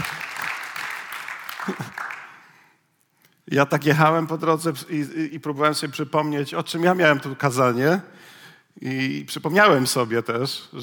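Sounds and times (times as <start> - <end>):
audience applause: 0.0 - 2.5
speech: 3.5 - 10.8.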